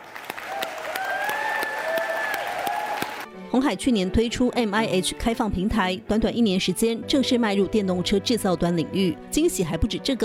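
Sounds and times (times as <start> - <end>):
applause: 0.0 - 3.3
speech: 3.6 - 10.2.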